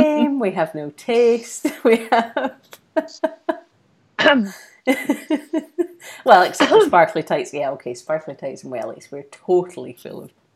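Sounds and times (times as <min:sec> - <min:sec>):
speech: 0:00.4 - 0:03.6, 0:04.2 - 0:10.5
person coughing: 0:06.5 - 0:06.9.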